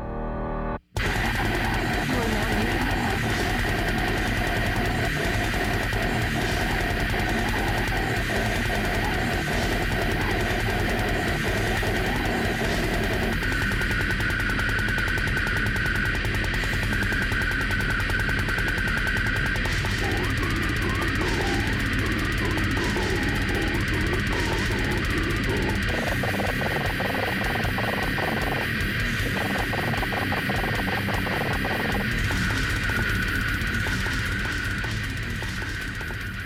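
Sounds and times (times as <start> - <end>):
extreme metal vocals with harsh guttural growls and noisy rasps: 1.0 - 14.2, 15.3 - 36.4
machine-like vocal stuttering made with double tongue strokes: 1.0 - 36.4.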